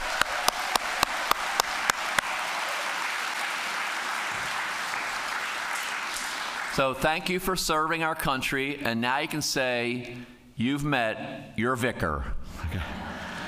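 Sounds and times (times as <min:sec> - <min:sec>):
audience applause: 0:00.0 - 0:06.9
speech: 0:06.8 - 0:13.1.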